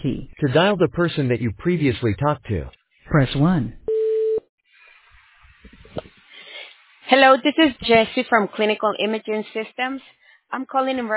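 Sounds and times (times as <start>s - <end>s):
speech: 0.0s - 3.8s, 7.1s - 11.1s
voicemail recording beep: 3.9s - 4.4s.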